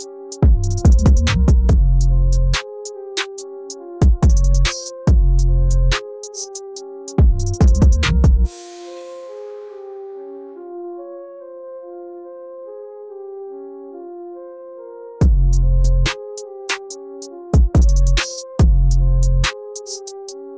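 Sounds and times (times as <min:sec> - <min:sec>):
frenzied bass assault: 0:00.4 - 0:02.6, 0:04.0 - 0:06.0, 0:07.2 - 0:08.5, 0:15.2 - 0:16.1, 0:17.6 - 0:19.5.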